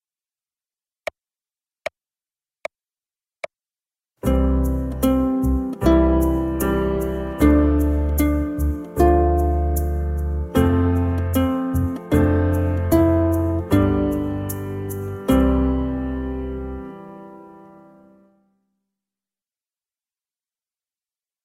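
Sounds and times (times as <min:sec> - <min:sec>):
children's ukulele music: 0:04.2 - 0:16.3.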